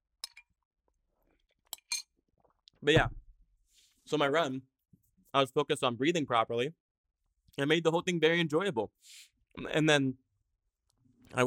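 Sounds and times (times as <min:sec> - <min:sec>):
spoon clinking against a cereal bowl: 0:01.7 - 0:02.1
speech: 0:02.8 - 0:03.2, 0:04.1 - 0:04.7, 0:05.3 - 0:06.8, 0:07.6 - 0:10.2.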